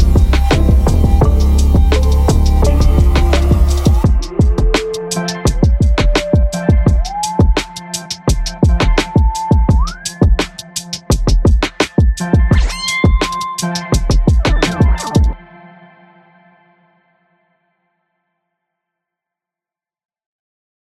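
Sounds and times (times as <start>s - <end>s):
heavy chill trap beat with 808 bass: 0.0s - 15.4s.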